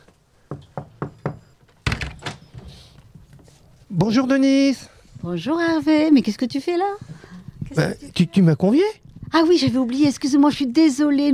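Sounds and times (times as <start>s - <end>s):
speech: 0.5s - 0.8s, 3.9s - 7.1s, 7.7s - 11.3s
knocking on a front door: 0.5s - 2.3s
front door opening with a clattering thud: 0.9s - 2.9s.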